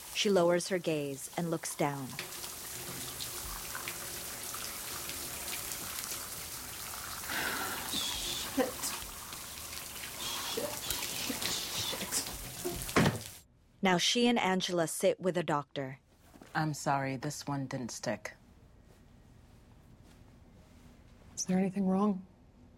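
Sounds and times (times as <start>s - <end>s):
shower running in a bathroom: 0.0s - 13.4s
speech: 0.2s - 2.4s, 13.8s - 18.4s, 21.4s - 22.3s.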